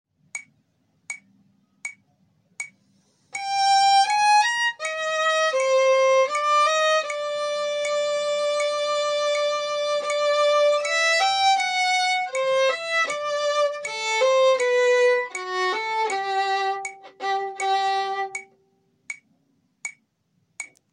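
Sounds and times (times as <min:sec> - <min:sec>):
metronome ticking: 0:00.2 - 0:02.8, 0:03.4 - 0:20.9
slow music excerpt: 0:02.7 - 0:18.6.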